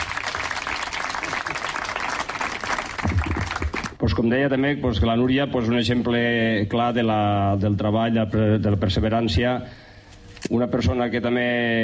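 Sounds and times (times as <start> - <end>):
audience applause: 0.0 - 4.0
speech: 4.0 - 9.8, 10.5 - 11.8.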